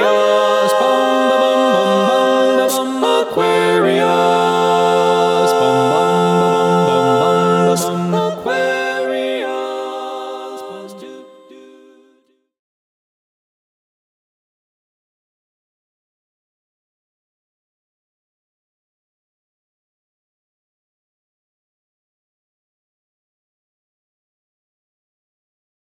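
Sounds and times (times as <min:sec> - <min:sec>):
a cappella singing: 0:00.0 - 0:12.4.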